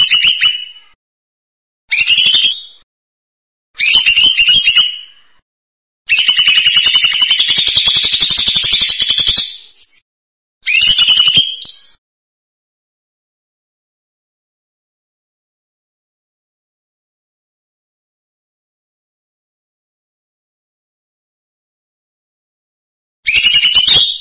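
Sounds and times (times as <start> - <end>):
bird song in buzzy trilled phrases: 1.9 - 2.8, 3.8 - 5.2, 6.1 - 10.0, 10.6 - 12.0, 23.3 - 24.1.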